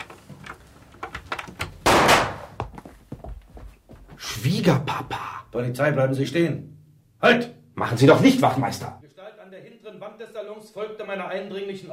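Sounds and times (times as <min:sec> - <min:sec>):
door lock clicking while being unlocked: 0:00.0 - 0:01.8
speech: 0:04.4 - 0:09.0, 0:10.6 - 0:11.9.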